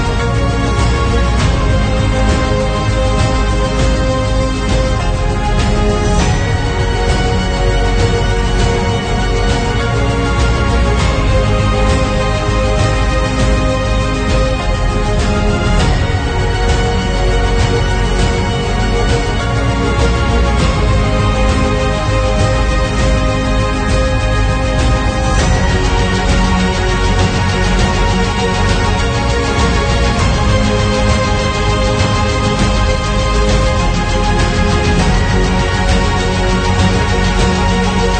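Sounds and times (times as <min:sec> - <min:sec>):
inspiring uplifting epic motivational cinematic trailer music: 0:00.0 - 0:38.1.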